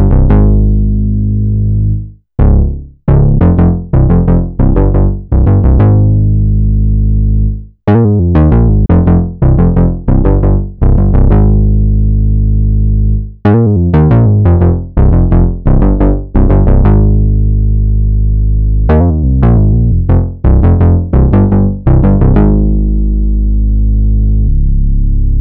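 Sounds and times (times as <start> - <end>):
synth bass loop in F: 0.0 - 25.3.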